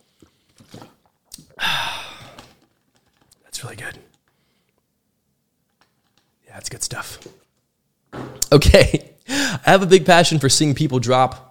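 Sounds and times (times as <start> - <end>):
swigging Fiji water from a bottle: 0.2 - 1.5
speech: 3.6 - 4.1, 6.6 - 7.4, 8.5 - 11.4.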